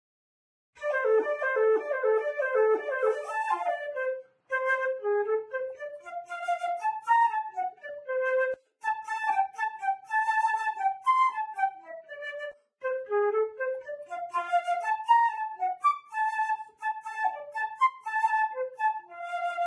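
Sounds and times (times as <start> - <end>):
flute: 0.8 - 19.6.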